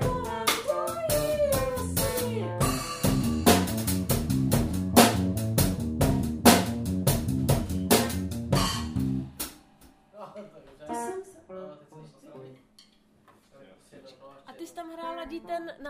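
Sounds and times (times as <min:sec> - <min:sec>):
jazzy drums: 0:00.0 - 0:09.7.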